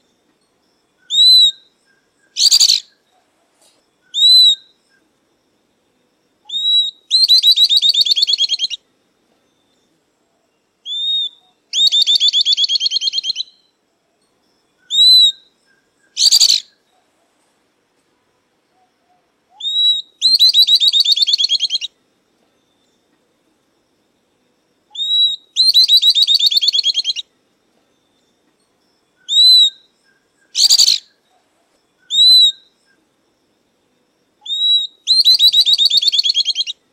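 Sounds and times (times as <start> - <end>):
southern beardless-tyrannulet song: 1.1 - 3.0, 6.5 - 8.8, 10.9 - 13.7, 14.9 - 16.8, 19.5 - 21.9, 24.9 - 27.2, 29.2 - 31.2, 32.0 - 32.7, 34.4 - 36.8.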